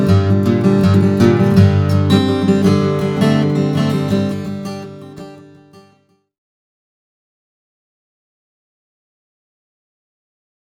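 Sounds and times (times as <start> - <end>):
Brazilian rosewood 000 acoustic guitar playing: 0.0 - 6.1.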